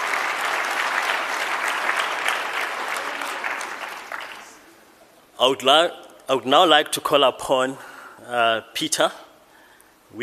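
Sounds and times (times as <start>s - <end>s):
audience applause: 0.0s - 4.7s
speech: 5.4s - 9.2s.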